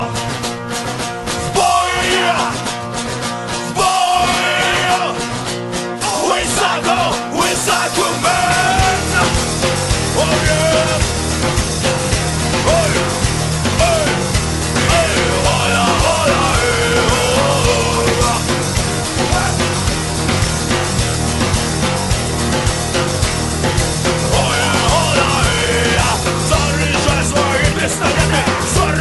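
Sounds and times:
psycho rock music: 0:00.0 - 0:29.0
laughter: 0:25.0 - 0:29.0.

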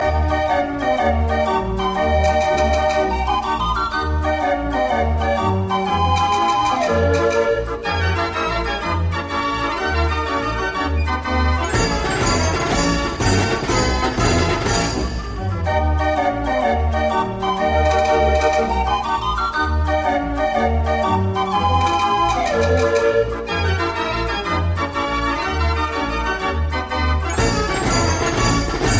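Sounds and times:
Dutch street barrel organ playing: 0:00.0 - 0:28.9.

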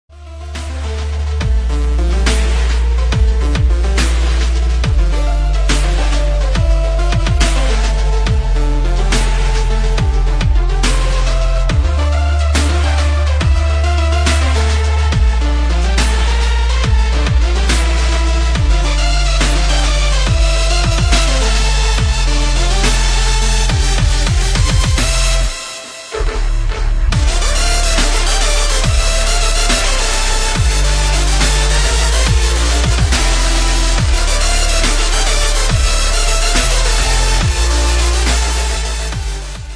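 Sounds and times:
dubstep remix: 0:00.2 - 0:39.7.

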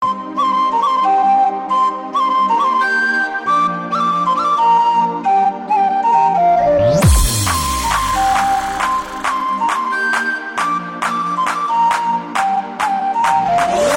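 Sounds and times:
flute: 0:00.0 - 0:13.9.

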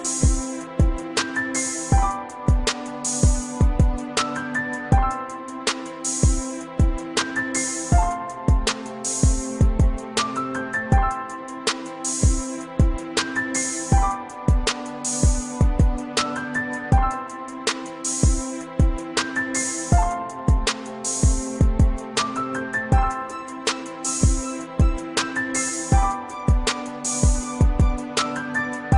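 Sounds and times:
romantic music mix: 0:00.0 - 0:28.9.

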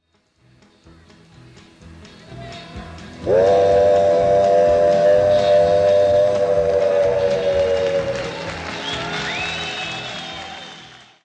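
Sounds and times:
old train songs medley: 0:03.1 - 0:10.2.

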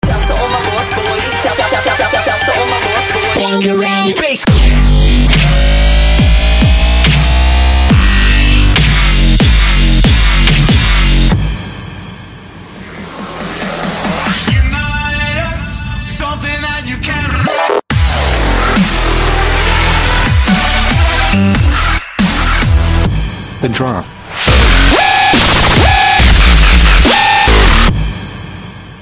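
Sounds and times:
brutal dubstep music: 0:00.0 - 0:16.0, 0:16.9 - 0:29.0.

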